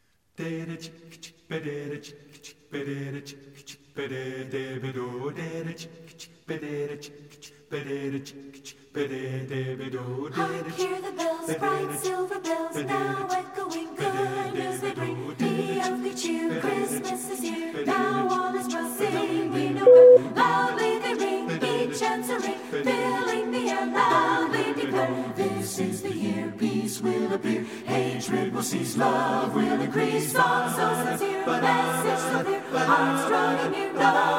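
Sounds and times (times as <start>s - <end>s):
a cappella singing of a carol: 0.4s - 34.3s.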